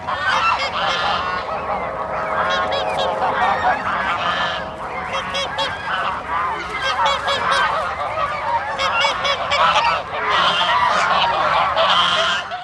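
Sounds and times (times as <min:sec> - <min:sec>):
helicopter passing over a lake in a city park: 0:00.0 - 0:10.1
geese honking: 0:00.0 - 0:12.6.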